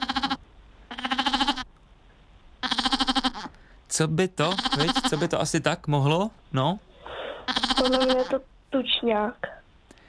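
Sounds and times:
lamb bleating: 0:00.0 - 0:01.7, 0:02.6 - 0:03.6, 0:04.4 - 0:05.5, 0:07.4 - 0:08.4
speech: 0:04.0 - 0:06.9, 0:07.8 - 0:09.5.

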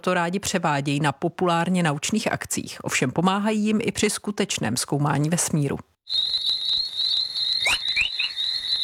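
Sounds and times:
speech: 0:00.0 - 0:06.4
quick rising chirps of space plasma chorus waves: 0:06.1 - 0:08.8
space plasma chorus waves rendered as a high-pitched electronic whine: 0:06.1 - 0:08.8.

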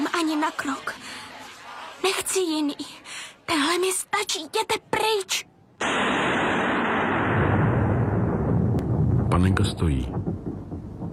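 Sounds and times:
speech: 0:00.3 - 0:01.1, 0:02.0 - 0:06.1, 0:09.4 - 0:10.5
thunder rumbling: 0:05.8 - 0:11.1.

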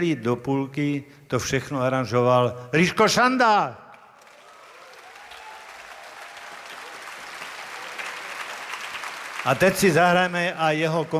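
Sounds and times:
speech: 0:00.0 - 0:03.8, 0:09.4 - 0:11.1
audience applause for a band's arranger at a concert: 0:04.2 - 0:11.1.

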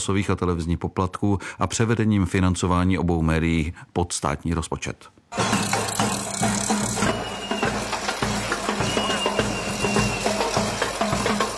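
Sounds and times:
speech: 0:00.0 - 0:05.8
protest march banging drums: 0:05.3 - 0:11.5.

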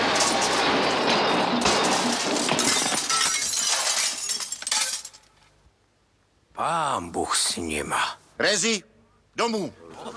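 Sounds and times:
glass shattering as a wagon and street lamp are smashed: 0:00.1 - 0:05.3
speech: 0:07.0 - 0:10.1.

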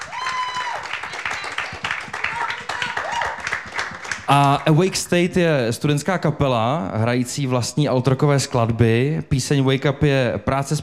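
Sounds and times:
applause: 0:00.0 - 0:05.0
speech: 0:04.3 - 0:10.8.

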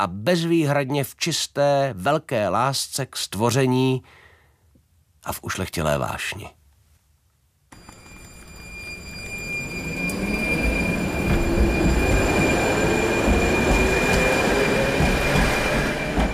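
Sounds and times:
speech: 0:00.0 - 0:04.2, 0:05.2 - 0:06.6
tram passing at turnaround loop: 0:07.8 - 0:16.3.

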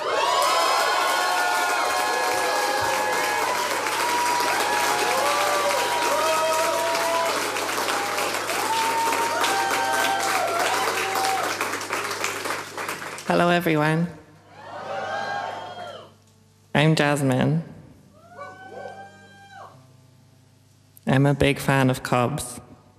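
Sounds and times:
audience applause: 0:00.0 - 0:13.6
speech: 0:13.3 - 0:14.2, 0:16.8 - 0:17.7, 0:21.2 - 0:22.6.

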